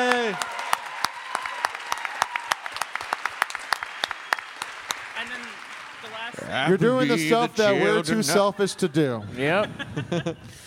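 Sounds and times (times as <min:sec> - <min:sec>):
cheers: 0:00.0 - 0:05.6
audience applause: 0:00.0 - 0:07.4
speech: 0:06.7 - 0:10.6
laughter: 0:07.2 - 0:10.6.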